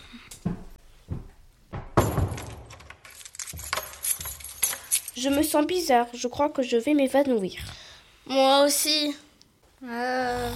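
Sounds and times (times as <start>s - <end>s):
door being closed and locked: 1.8s - 4.8s
speech: 5.2s - 9.2s, 9.8s - 10.5s.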